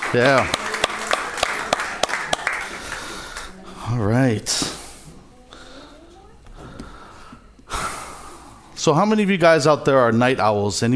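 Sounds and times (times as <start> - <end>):
sharp claps: 0.0 - 3.5
audience applause: 0.0 - 3.8
speech: 0.1 - 0.6, 3.9 - 4.8, 8.8 - 10.9.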